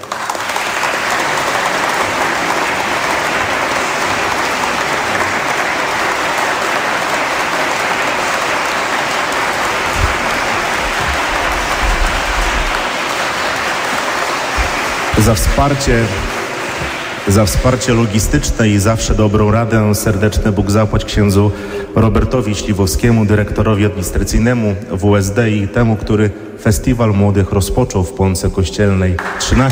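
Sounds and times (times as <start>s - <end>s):
audience applause: 0.0s - 22.1s, 29.2s - 29.7s
speech: 15.3s - 16.3s, 17.3s - 29.7s.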